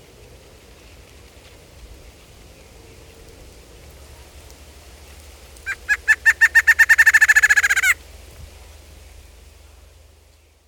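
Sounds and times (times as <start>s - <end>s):
barred antshrike song: 6.2s - 8.0s.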